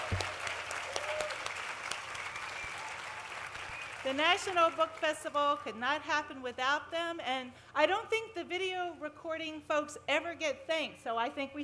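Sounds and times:
round of applause: 0.0 - 5.0
speech: 4.1 - 11.6.

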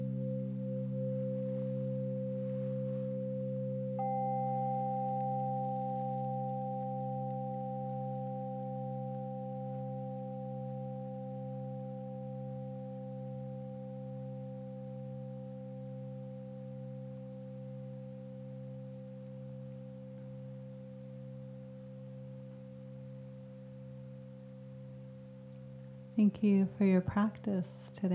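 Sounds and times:
meditation bell ringing out: 0.0 - 26.1
speech: 26.2 - 28.1.

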